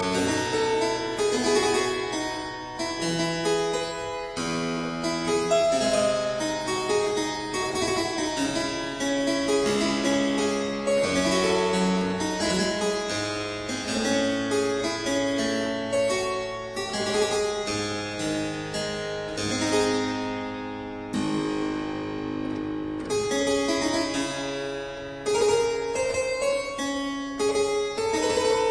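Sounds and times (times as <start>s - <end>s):
keyboard allemande in D minor: 0.0s - 28.7s.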